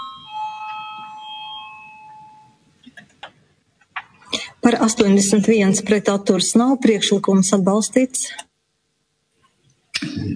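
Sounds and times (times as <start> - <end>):
chairman's bell ringing: 0.0 - 2.7
speech: 4.7 - 8.5.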